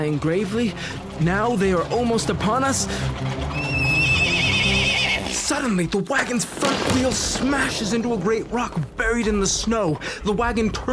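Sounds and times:
speech: 0:00.0 - 0:03.6, 0:05.5 - 0:10.9
low rumble of hooves and movement: 0:00.0 - 0:10.9
horse whinnying: 0:03.2 - 0:05.5.

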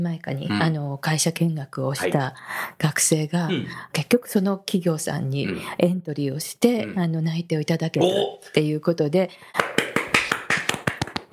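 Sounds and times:
speech: 0:00.0 - 0:09.8
hand clapping: 0:09.6 - 0:11.3.

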